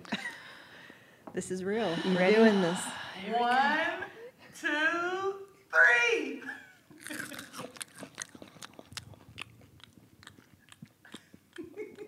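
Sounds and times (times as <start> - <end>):
speech: 1.4 - 4.0, 4.6 - 5.3
crunching on roasted maple chipotle crickets: 7.0 - 11.4.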